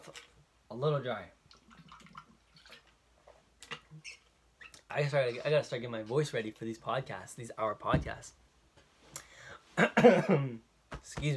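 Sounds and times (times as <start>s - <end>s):
person sipping water: 0.0s - 0.4s, 1.5s - 4.9s
speech: 0.1s - 1.4s, 4.9s - 8.4s, 9.8s - 11.3s.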